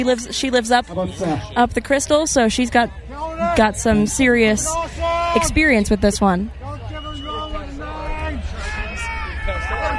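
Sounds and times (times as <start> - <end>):
speech: 0.0 - 6.6
crowd shouting: 3.0 - 5.8, 6.5 - 9.9.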